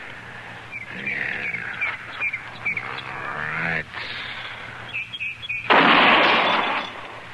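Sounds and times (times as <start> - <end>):
freshly repaired rifle shot braced on a fence rail: 5.7 - 7.0.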